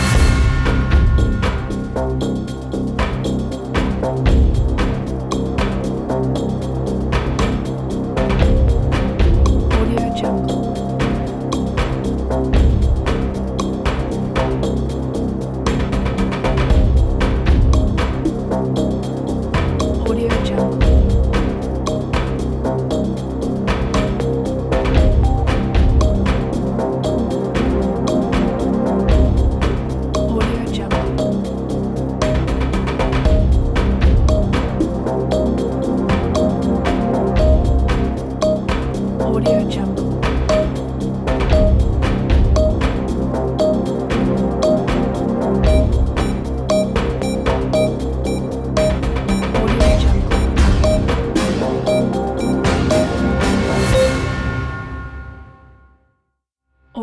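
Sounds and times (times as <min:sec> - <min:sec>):
quiz game thinking music: 0:00.1 - 0:54.9.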